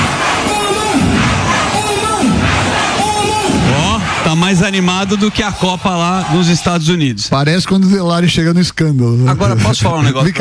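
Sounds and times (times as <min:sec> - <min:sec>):
large crowd of football supporters cheering and chanting: 0:00.0 - 0:07.3
speech: 0:04.3 - 0:10.3.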